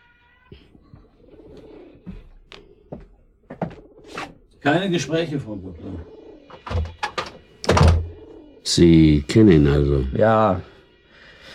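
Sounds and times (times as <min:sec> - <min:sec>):
speech: 0:04.6 - 0:06.2, 0:08.8 - 0:10.7
door being pushed shut: 0:06.5 - 0:08.1.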